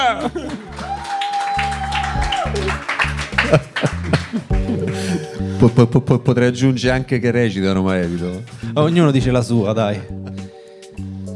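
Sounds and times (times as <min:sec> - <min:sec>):
laughter: 0:00.0 - 0:01.1, 0:02.0 - 0:06.3
applause: 0:00.0 - 0:05.2
bright sustained musical tones: 0:02.6 - 0:06.0
speech: 0:03.5 - 0:04.0, 0:05.6 - 0:10.2.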